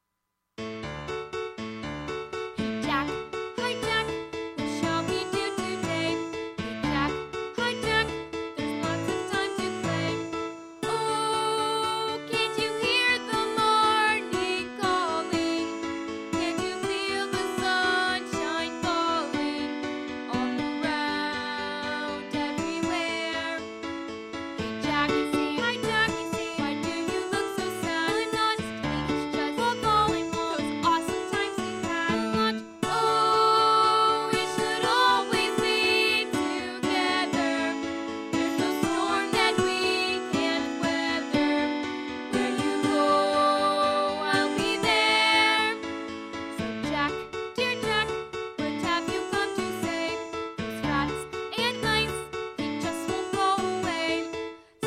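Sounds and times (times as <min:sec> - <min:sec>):
vocals: 0:02.6 - 0:23.8, 0:24.6 - 0:54.8.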